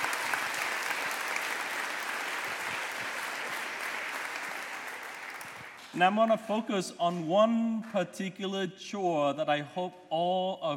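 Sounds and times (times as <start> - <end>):
audience applause: 0.0 - 6.2
speech: 5.9 - 10.7.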